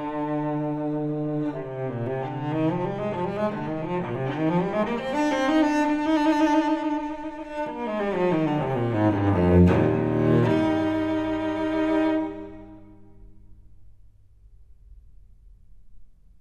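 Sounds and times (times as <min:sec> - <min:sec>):
solo cello suite: 0:00.0 - 0:13.7.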